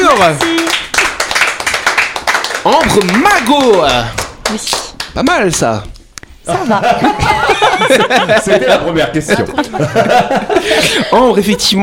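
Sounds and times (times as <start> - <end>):
applause for the guest: 0.0 - 5.6
speech: 0.2 - 0.5, 2.6 - 11.8
laughter: 6.5 - 11.8.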